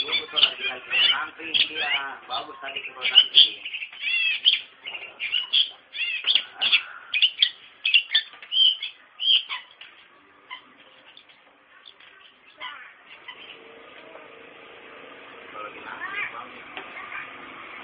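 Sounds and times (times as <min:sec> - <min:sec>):
Long-tailed shrike singing lively: 0:00.0 - 0:13.6.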